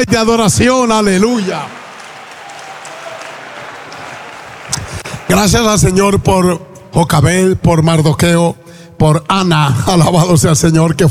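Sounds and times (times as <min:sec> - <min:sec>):
speech: 0:00.0 - 0:01.8, 0:05.3 - 0:11.0
audience applause: 0:01.0 - 0:06.0.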